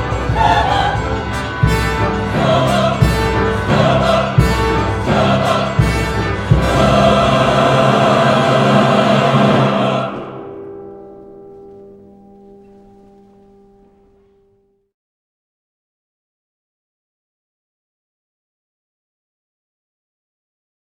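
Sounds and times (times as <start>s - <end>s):
bells: 0.0s - 14.8s.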